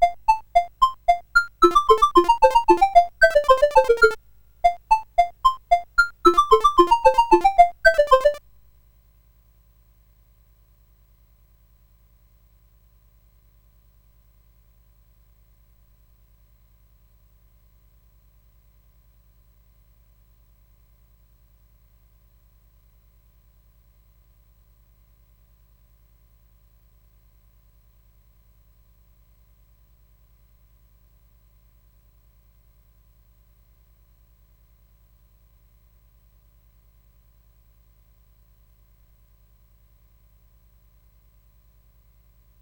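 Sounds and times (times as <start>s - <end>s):
SID CSG8580R5 chip music: 0.0s - 8.4s.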